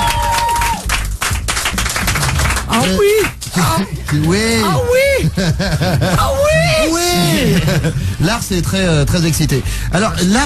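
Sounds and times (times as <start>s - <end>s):
studio audience cheering and whooping: 0.0s - 1.0s
studio audience applause: 0.0s - 4.5s
laughter: 3.6s - 8.2s
speech: 3.7s - 10.4s.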